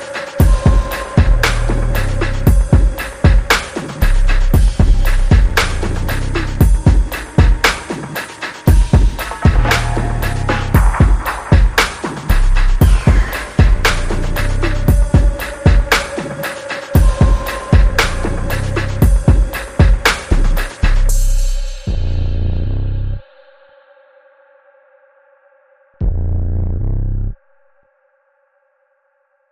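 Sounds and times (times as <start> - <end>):
drums: 0.0 - 22.0
bass: 1.2 - 2.8, 4.0 - 6.9, 8.9 - 11.3, 12.3 - 15.3, 17.8 - 19.2, 20.2 - 23.3, 26.0 - 27.4.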